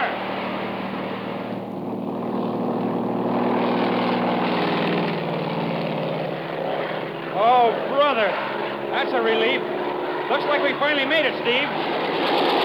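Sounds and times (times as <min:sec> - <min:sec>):
propeller plane engine roaring for takeoff: 0:00.0 - 0:12.6
speech: 0:10.3 - 0:12.6.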